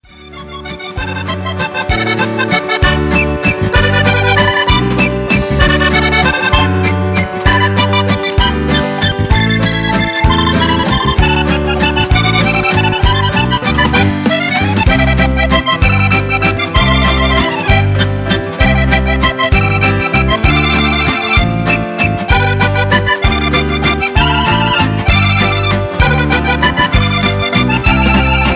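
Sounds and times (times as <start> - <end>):
musette accordion music: 0.0 - 28.5.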